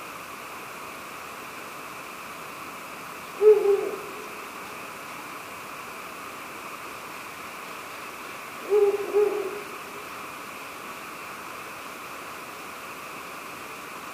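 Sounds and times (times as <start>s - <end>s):
hiss: 0.0s - 14.1s
Ural owl hooting: 3.3s - 4.6s, 8.6s - 10.1s.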